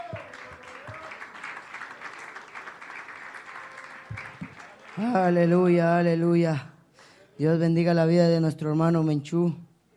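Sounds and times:
audience clapping as offering of praise: 0:00.0 - 0:05.6
speech: 0:05.0 - 0:06.7, 0:07.4 - 0:09.6.

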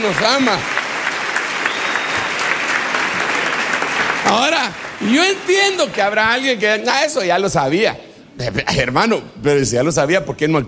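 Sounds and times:
speech: 0:00.0 - 0:00.8, 0:04.2 - 0:10.6
audience applause: 0:00.0 - 0:06.6.

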